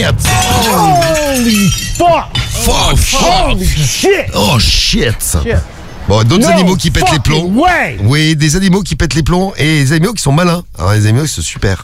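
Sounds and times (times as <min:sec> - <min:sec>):
glass vivarium pane shattering: 0:00.0 - 0:03.6
speech: 0:01.7 - 0:11.8.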